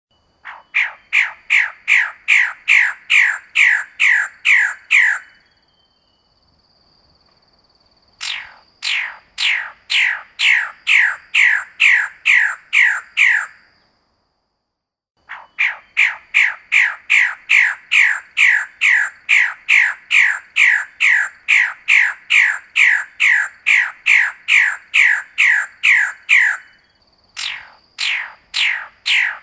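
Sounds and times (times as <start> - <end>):
faint steady tone: 0.1 - 0.6, 5.3 - 11.5, 26.6 - 29.4
bird rasping squawks: 0.4 - 5.3, 8.2 - 13.6, 15.3 - 26.7, 27.4 - 29.4.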